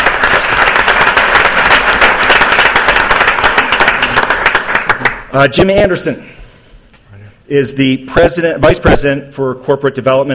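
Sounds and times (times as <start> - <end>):
audience applause: 0.0 - 5.3
speech: 5.4 - 6.4, 7.5 - 10.3.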